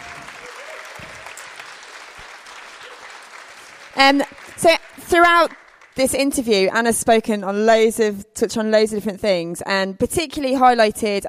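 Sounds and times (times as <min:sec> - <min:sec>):
audience applause: 0:00.0 - 0:06.0
speech: 0:04.0 - 0:11.2.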